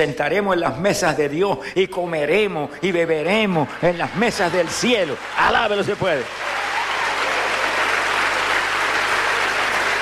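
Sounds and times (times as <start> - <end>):
speech: 0.0 - 6.6
audience applauding: 3.4 - 10.0.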